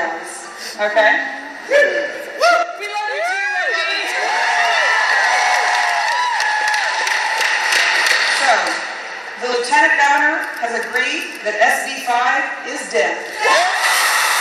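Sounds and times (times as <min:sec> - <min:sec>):
speech: 0:00.8 - 0:02.2, 0:09.8 - 0:13.8
crowd cheering with whoops and shouts: 0:01.6 - 0:09.3, 0:13.3 - 0:14.3
audience applause: 0:03.6 - 0:09.2, 0:13.4 - 0:14.3.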